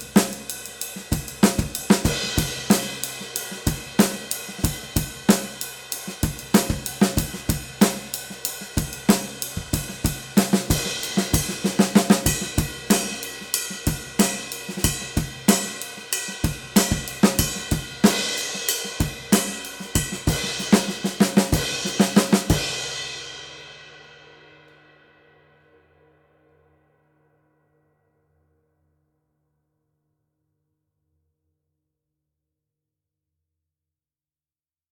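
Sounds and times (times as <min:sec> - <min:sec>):
vintage ride cymbal: 0:00.0 - 0:23.1.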